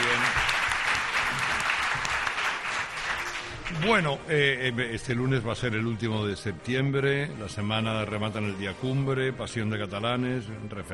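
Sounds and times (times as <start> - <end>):
audience applause: 0.0 - 4.1
speech: 3.7 - 10.9.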